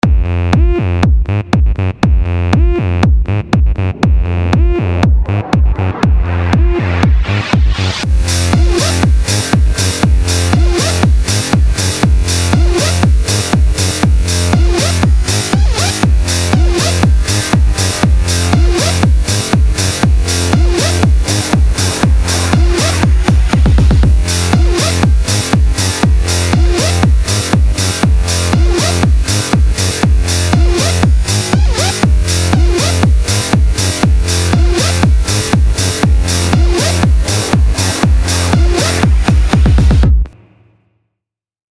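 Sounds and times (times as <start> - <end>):
sidechained electro bass: 0.0 - 40.5.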